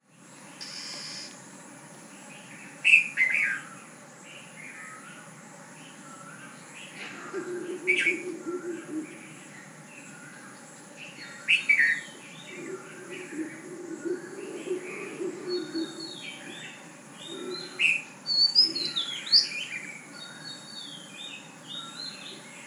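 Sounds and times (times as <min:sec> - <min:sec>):
dawn chorus of birds: 0:00.1 - 0:22.6.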